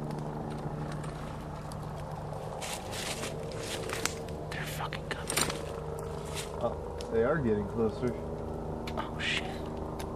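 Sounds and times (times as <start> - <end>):
helicopter or plane flying overhead: 0.0 - 10.1
speech: 6.6 - 8.4.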